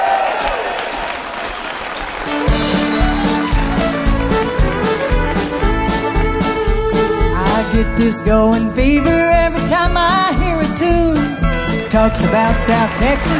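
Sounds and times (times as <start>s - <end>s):
crowd applauding to welcome a country singer onstage: 0.0s - 6.1s, 11.6s - 13.3s
band playing a rhythmic beat and bass: 0.4s - 13.3s
speech: 7.8s - 13.3s.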